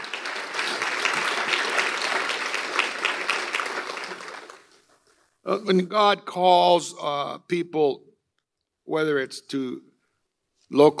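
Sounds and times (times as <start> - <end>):
audience clapping: 0.0 - 5.2
speech: 5.5 - 8.1, 8.9 - 9.9, 10.7 - 10.9.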